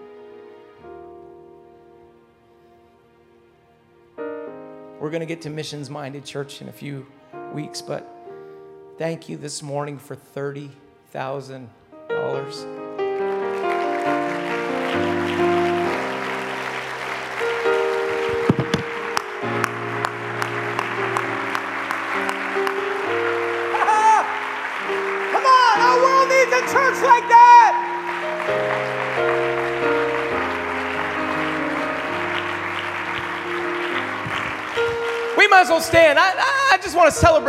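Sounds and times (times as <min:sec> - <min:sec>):
speech: 0:05.0 - 0:08.2, 0:09.0 - 0:12.8, 0:15.0 - 0:15.6, 0:35.8 - 0:37.4
church audience applause: 0:13.0 - 0:37.3.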